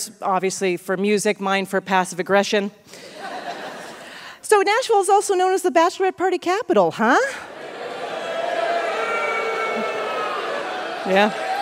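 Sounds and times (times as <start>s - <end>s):
speech: 0.0s - 3.2s, 4.5s - 7.4s, 11.1s - 11.6s
laughter: 3.0s - 4.2s, 7.4s - 11.6s
crowd of men booing: 7.5s - 11.6s.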